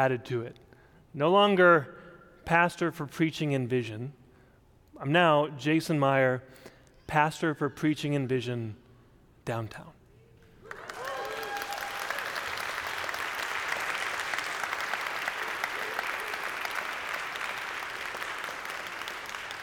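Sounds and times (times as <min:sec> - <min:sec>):
speech: 0:00.0 - 0:00.6, 0:01.2 - 0:04.2, 0:05.0 - 0:08.8, 0:09.5 - 0:10.0
audience clapping: 0:10.6 - 0:19.6.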